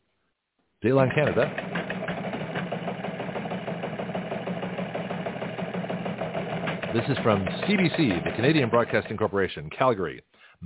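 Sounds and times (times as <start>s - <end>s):
speech: 0.8s - 1.8s, 6.9s - 10.6s
news teletype clattering: 1.1s - 9.2s.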